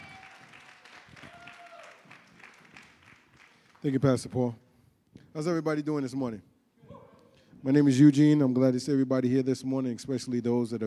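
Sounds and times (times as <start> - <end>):
church audience applause welcoming a speaker: 0.0 - 3.8
speech: 3.8 - 4.6, 5.3 - 6.5, 7.6 - 10.8.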